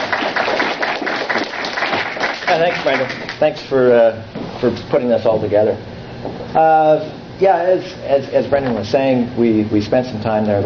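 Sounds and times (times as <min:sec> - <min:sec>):
audience applause: 0:00.0 - 0:03.4
speech: 0:02.5 - 0:10.6.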